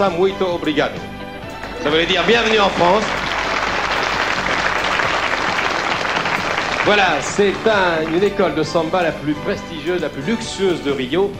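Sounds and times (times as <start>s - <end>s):
speech: 0.0s - 1.1s, 1.8s - 3.2s, 6.8s - 11.3s
audience applause: 1.6s - 8.8s.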